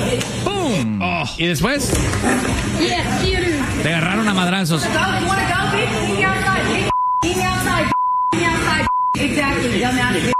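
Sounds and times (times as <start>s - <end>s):
heated talking: 0.0s - 10.3s
speech: 1.2s - 10.3s
censor bleeps over swearing: 6.9s - 9.2s.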